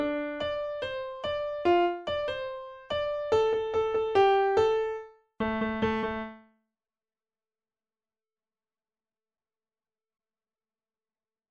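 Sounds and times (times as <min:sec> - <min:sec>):
MIDI piano: 0:00.0 - 0:06.4.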